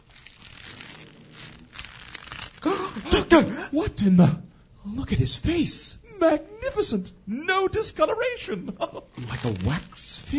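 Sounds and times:
old wrappings peeled from a preserved body: 0:00.0 - 0:03.4, 0:08.9 - 0:10.3
speech: 0:03.2 - 0:10.3.

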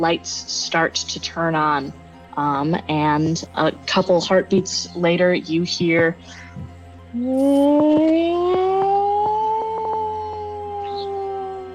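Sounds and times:
speech: 0:00.0 - 0:08.8
sirens going off: 0:07.2 - 0:11.7.

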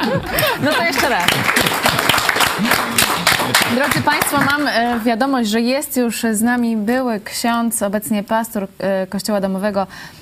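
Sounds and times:
laughter: 0:00.0 - 0:04.4
speech: 0:00.1 - 0:10.2
applause from a group: 0:00.4 - 0:05.0.

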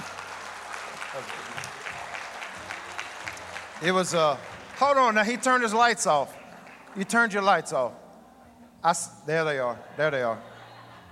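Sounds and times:
crowd applause: 0:00.0 - 0:07.6
speech: 0:01.2 - 0:01.5, 0:03.8 - 0:08.0, 0:08.8 - 0:10.5
laughter: 0:09.5 - 0:11.1.

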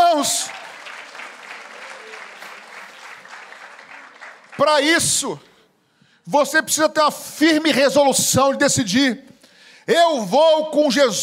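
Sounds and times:
audience applauding: 0:00.0 - 0:05.4
speech: 0:04.6 - 0:05.5, 0:06.3 - 0:11.2.

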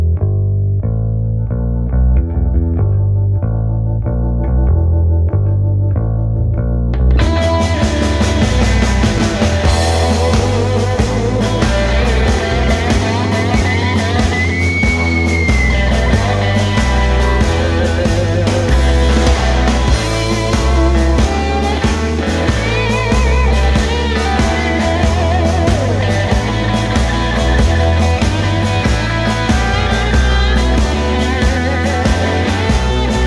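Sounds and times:
distorted guitars: 0:00.0 - 0:33.2
rock song with mellow intro and full band: 0:06.9 - 0:33.2
driving drums: 0:07.1 - 0:33.2.

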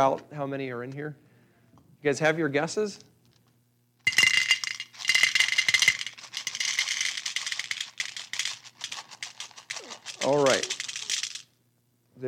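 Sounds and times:
speech: 0:00.0 - 0:01.2, 0:02.0 - 0:03.1, 0:10.3 - 0:10.8
Tic Tacs pouring out of a plastic container: 0:04.1 - 0:11.5.

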